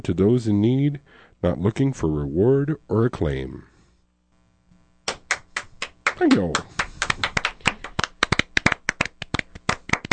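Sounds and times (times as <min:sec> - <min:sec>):
speech: 0:00.0 - 0:03.7, 0:06.2 - 0:07.3
three-dimensional clap sound effect: 0:05.0 - 0:10.1.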